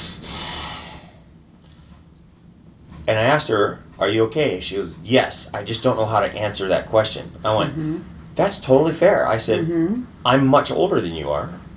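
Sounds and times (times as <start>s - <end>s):
imitated heavy breathing through pursed lips: 0.0s - 1.3s
speech: 3.1s - 11.7s.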